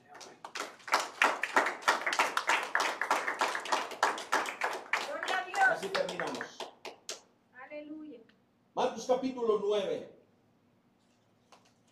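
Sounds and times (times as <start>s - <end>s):
audience applauding: 0.0s - 7.2s
speech: 9.0s - 10.2s.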